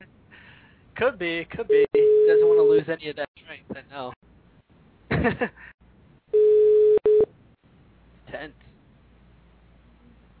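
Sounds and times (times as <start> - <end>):
speech: 1.0 - 4.3, 5.2 - 5.7, 8.3 - 8.7
telephone call tone: 2.0 - 2.8, 6.3 - 7.3.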